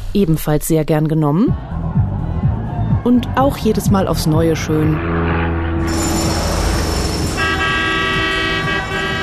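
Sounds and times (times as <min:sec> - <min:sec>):
speech: 0:00.1 - 0:01.7, 0:03.0 - 0:06.1
truck horn blaring: 0:05.0 - 0:09.2
heavy truck engine rumble: 0:05.4 - 0:09.2.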